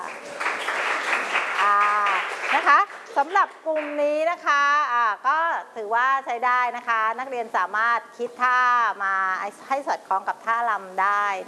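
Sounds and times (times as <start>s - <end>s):
students in a classroom clapping after a dance performance: 0.0s - 4.0s
speech: 2.6s - 11.4s.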